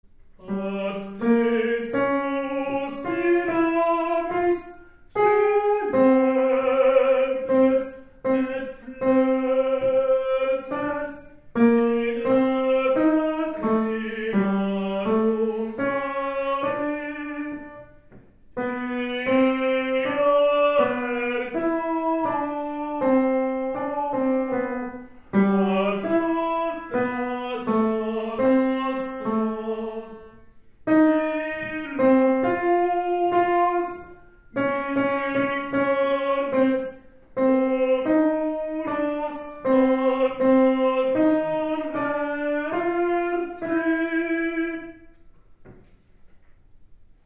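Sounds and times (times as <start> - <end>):
tenor voices singing: 0.4 - 17.8, 18.6 - 45.1.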